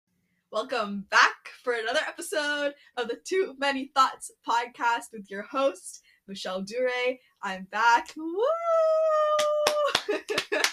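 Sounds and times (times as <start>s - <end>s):
speech: 0.5s - 10.7s
random hand claps in background: 9.4s - 10.7s.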